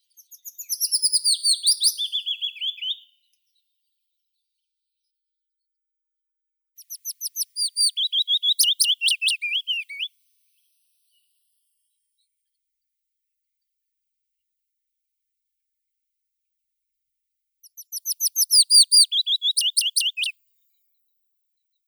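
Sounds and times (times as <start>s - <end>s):
Phylloscopus trochilus willow warbler singing: 0.2s - 3.1s, 6.8s - 10.1s, 17.7s - 20.3s.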